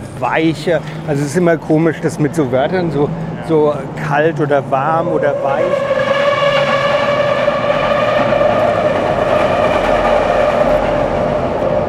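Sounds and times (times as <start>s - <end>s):
U3 underground train passing overhead: 0.0s - 11.8s
speech: 0.2s - 6.0s
U3 train tonal whine: 4.0s - 11.8s.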